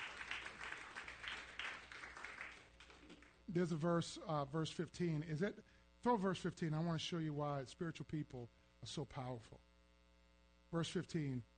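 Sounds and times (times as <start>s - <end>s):
crowd clapping: 0.0s - 3.4s
speech: 3.5s - 9.6s, 10.7s - 11.5s.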